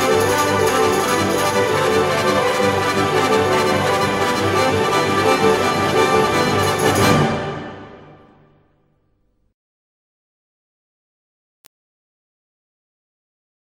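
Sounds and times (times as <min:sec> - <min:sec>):
Russian dance music: 0:00.0 - 0:08.0.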